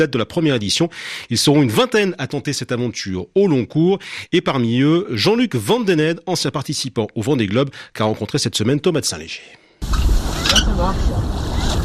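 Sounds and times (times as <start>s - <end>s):
speech: 0.0s - 11.8s
light wind: 9.8s - 11.8s
water noise under a sailboat: 9.8s - 11.8s.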